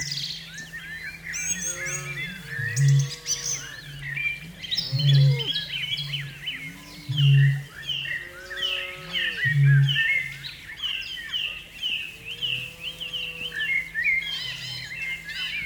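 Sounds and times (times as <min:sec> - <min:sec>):
Australasian bittern calling: 0:01.4 - 0:15.6.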